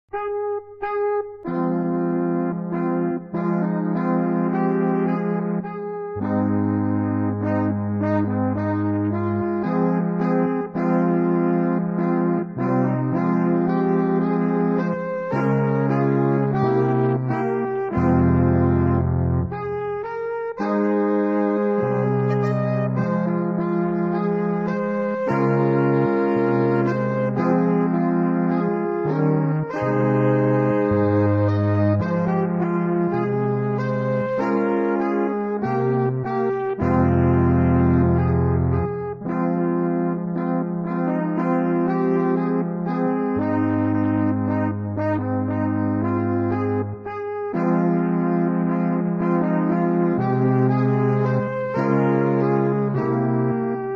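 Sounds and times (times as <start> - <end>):
solo music: 0.1 - 53.9.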